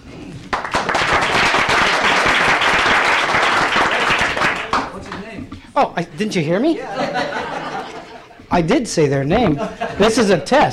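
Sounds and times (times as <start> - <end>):
assembled body applauding to welcome visitors to Juneau: 0.5 - 5.3
laughter: 3.6 - 5.2, 6.0 - 8.5, 9.3 - 10.7
speech: 5.8 - 7.3, 8.6 - 10.7.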